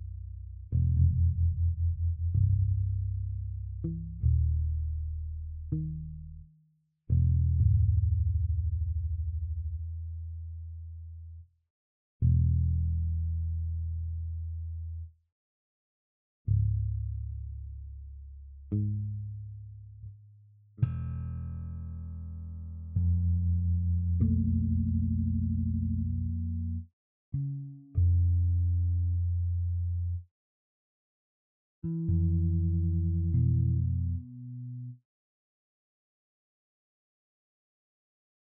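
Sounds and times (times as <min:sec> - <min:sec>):
electric bass: 0:00.0 - 0:06.5, 0:07.1 - 0:11.4, 0:12.2 - 0:15.1, 0:16.5 - 0:20.2, 0:20.8 - 0:30.2, 0:31.8 - 0:35.0.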